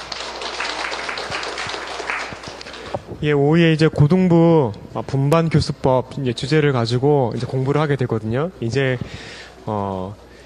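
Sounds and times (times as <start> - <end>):
audience applause: 0.0 - 3.0
speech: 3.2 - 10.2.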